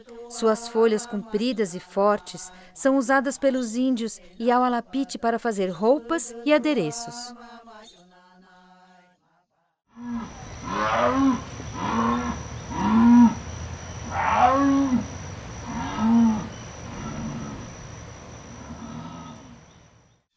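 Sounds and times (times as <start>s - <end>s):
speech: 0.0s - 7.7s, 10.0s - 11.9s
jaguar roaring in deep hoarse grunts: 10.0s - 19.9s.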